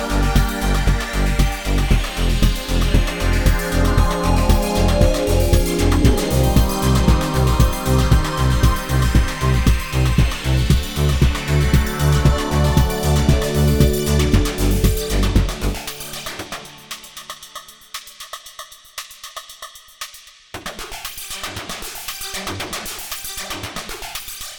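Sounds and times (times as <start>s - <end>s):
synthesizer arpeggio: 0.0s - 17.3s.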